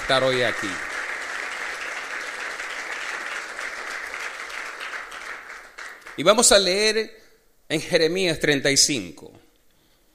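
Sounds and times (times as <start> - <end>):
audience applauding: 0.0 - 6.5
speech: 0.1 - 0.9, 6.2 - 9.4.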